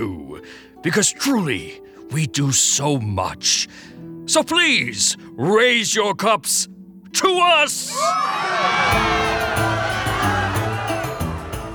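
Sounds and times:
speech: 0.0 - 10.4
crowd of partying gods cheering and shouting: 7.9 - 11.7.

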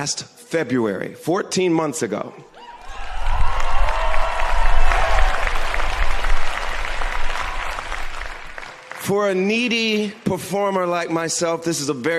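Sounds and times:
speech: 0.0 - 2.5, 9.1 - 12.1
cheers and whoops: 2.6 - 8.6
large live audience applause: 2.7 - 9.4.

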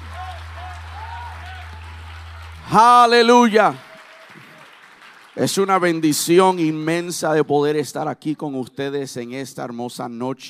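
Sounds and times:
low constant hum: 0.0 - 3.0
voices calling and cheering: 0.0 - 4.2
audience applause: 0.0 - 6.4
speech: 2.7 - 3.8, 5.4 - 10.4.

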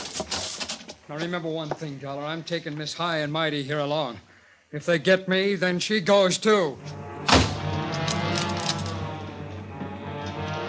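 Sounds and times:
speech: 1.1 - 7.0
heavy wooden door smashed open: 7.3 - 8.8.

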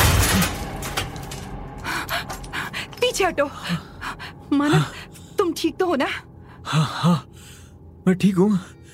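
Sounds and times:
ceiling fan falling and crashing down: 0.0 - 1.6
speech: 3.2 - 3.9, 4.5 - 8.8.

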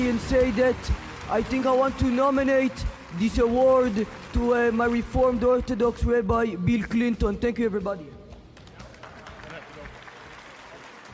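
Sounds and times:
awkward scattered applause from an audience: 0.0 - 6.0, 8.4 - 11.1
speech: 0.1 - 8.1.

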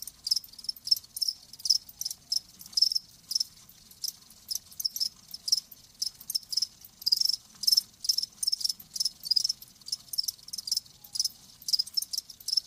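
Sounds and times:
background chorus: 0.0 - 12.6
cricket chirps: 0.0 - 12.6.

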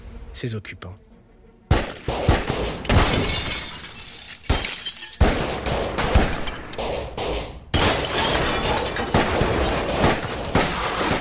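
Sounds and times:
speech: 0.4 - 1.1
pistol and shotgun fire: 1.7 - 3.5, 5.2 - 8.0, 9.0 - 11.1
shattering glass: 2.9 - 11.1.

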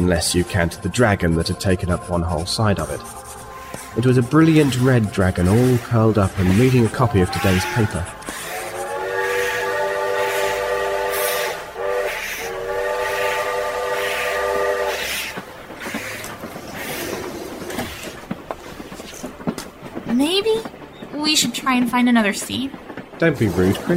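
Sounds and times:
speech: 0.0 - 3.3, 3.9 - 8.2, 21.8 - 23.9
train carriage rolling along rails: 0.0 - 23.9
train multi-tone horn blaring: 3.4 - 16.2.

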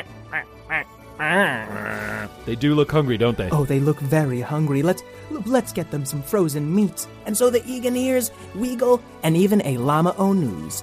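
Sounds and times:
penguins calling at the South Pole: 0.0 - 2.3
speech: 0.3 - 10.8.

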